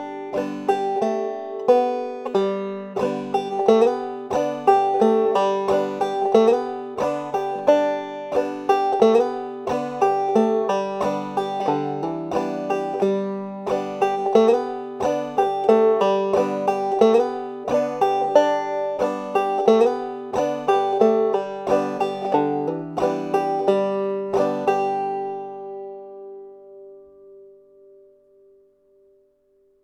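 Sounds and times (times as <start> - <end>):
banjo folk tune with hammer-ons, pull-offs and slides: 0.0 - 27.6.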